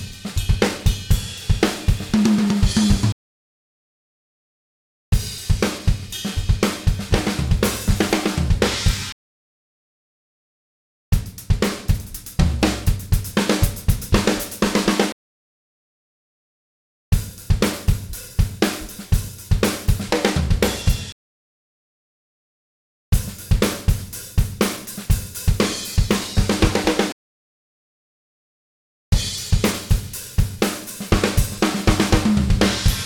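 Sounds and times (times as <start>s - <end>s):
modern rock drum fill: 0.0s - 3.2s, 5.2s - 9.1s, 11.2s - 15.1s, 17.2s - 21.1s, 23.2s - 27.1s, 29.2s - 33.0s.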